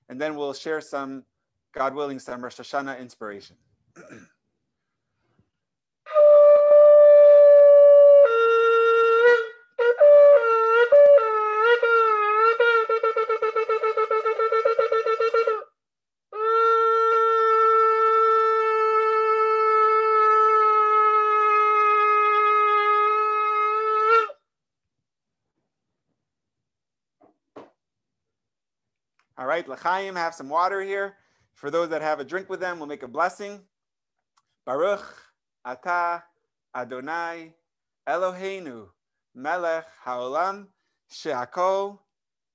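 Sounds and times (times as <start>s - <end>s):
speech: 0.1s - 4.3s, 29.6s - 33.7s, 34.6s - 42.0s
loud raw shofar horn blasts: 6.1s - 24.4s.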